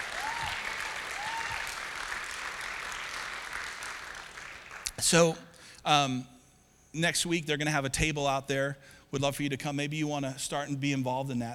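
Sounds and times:
audience applause: 0.0s - 5.0s
speech: 5.0s - 6.3s, 6.9s - 11.5s.

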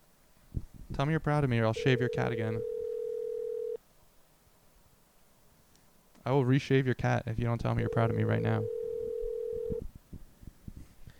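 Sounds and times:
speech: 1.0s - 2.7s, 6.2s - 8.8s
low-pitched telephone ringing tone: 1.8s - 3.8s, 7.8s - 9.8s.

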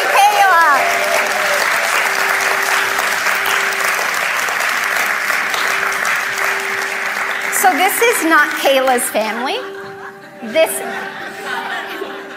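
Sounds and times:
audience applauding a performer coming on stage: 0.0s - 9.4s
speech: 8.2s - 9.8s, 10.4s - 11.2s
laughter: 9.2s - 12.3s.

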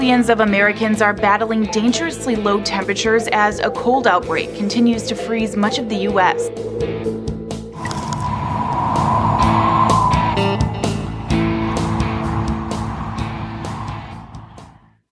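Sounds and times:
speech: 0.0s - 7.2s
cold winter wind howling: 3.6s - 15.0s.

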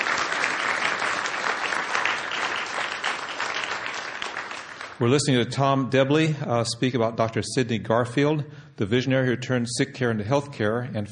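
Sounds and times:
audience applause: 0.0s - 5.0s
speech: 5.0s - 11.0s.

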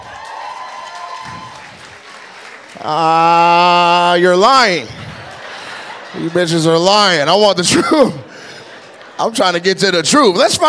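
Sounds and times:
audience clapping: 0.0s - 7.2s
speech: 2.8s - 5.0s, 6.2s - 8.2s, 9.2s - 10.6s
laughter: 4.0s - 10.2s.

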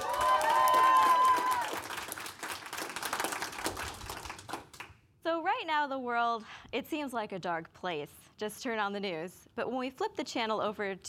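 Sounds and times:
audience clapping: 0.0s - 5.0s
speech: 5.6s - 11.0s.

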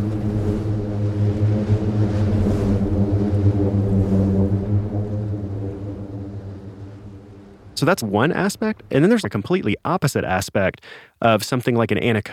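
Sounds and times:
booming sand dune low drone: 0.0s - 9.8s
speech: 7.8s - 12.3s.

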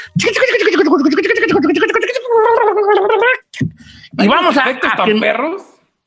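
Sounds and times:
speech: 0.0s - 1.5s, 4.2s - 5.7s
tongue trill imitating a cassette rewinding: 0.0s - 3.8s.

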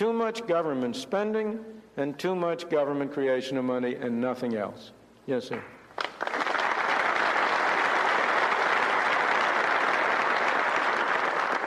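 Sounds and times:
speech: 0.0s - 6.3s
audience applause: 6.0s - 11.6s.

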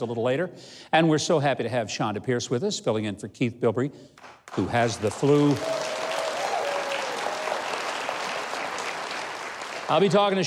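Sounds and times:
speech: 0.0s - 6.0s, 9.9s - 10.4s
studio audience clapping: 4.2s - 10.4s.

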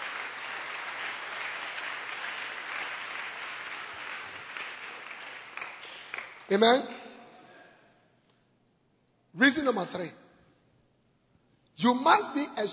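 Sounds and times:
audience clapping: 0.0s - 7.0s
speech: 6.5s - 7.0s, 9.4s - 10.2s, 11.8s - 12.7s.

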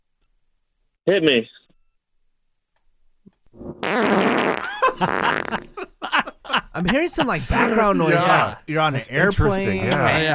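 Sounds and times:
speech: 1.0s - 1.6s, 3.8s - 5.8s, 6.8s - 10.3s
long loud sputtering fart: 3.6s - 5.8s
laughter: 4.6s - 8.6s, 9.6s - 10.3s.

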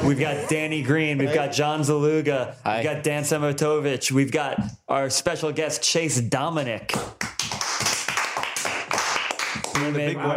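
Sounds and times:
speech: 0.1s - 7.2s, 9.8s - 10.3s
clapping: 6.9s - 10.0s.

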